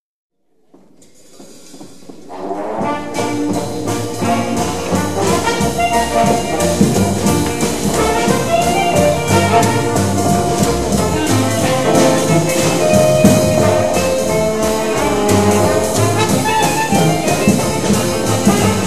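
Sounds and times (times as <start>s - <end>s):
jazz band playing: 2.3s - 18.8s.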